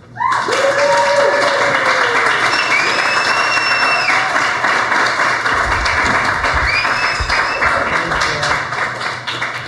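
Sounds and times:
audience applause: 0:00.0 - 0:09.6
faint whistles and cheers: 0:00.1 - 0:04.6, 0:06.5 - 0:07.9.

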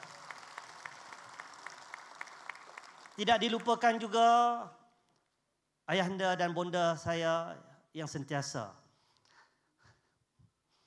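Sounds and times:
audience applause: 0:00.0 - 0:03.4
speech: 0:03.2 - 0:04.8, 0:05.9 - 0:08.8.

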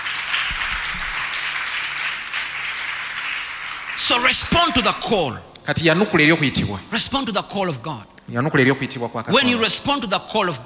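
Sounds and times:
audience clapping hands: 0:00.0 - 0:05.2
speech: 0:04.1 - 0:10.6.

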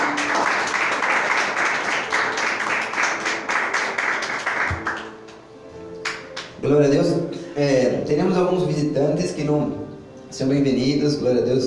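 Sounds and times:
audience applauding: 0:00.0 - 0:05.4, 0:06.0 - 0:06.6
speech: 0:06.7 - 0:11.6.

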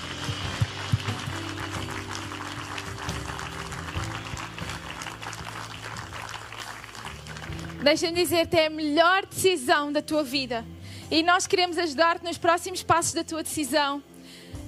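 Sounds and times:
audience applause: 0:00.0 - 0:07.9
speech: 0:07.8 - 0:14.1.

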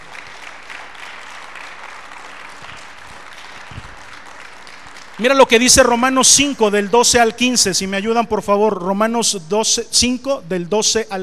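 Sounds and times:
audience applause: 0:00.0 - 0:06.1
speech: 0:05.2 - 0:11.2.

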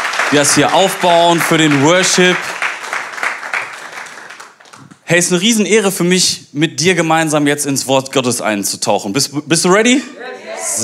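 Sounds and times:
audience applause in church: 0:00.0 - 0:04.9
speech: 0:00.3 - 0:02.6, 0:05.1 - 0:10.8.

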